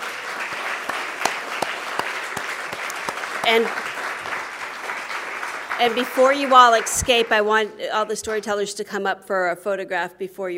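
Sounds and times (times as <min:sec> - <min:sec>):
audience applause: 0:00.0 - 0:07.5
speech: 0:03.4 - 0:03.9, 0:05.8 - 0:10.5.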